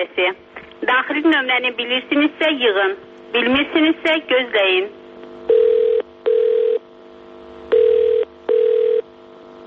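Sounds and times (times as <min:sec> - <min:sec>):
speech: 0:00.0 - 0:05.7
telephone ringback tones calling a district police office: 0:05.5 - 0:06.8, 0:07.7 - 0:09.0.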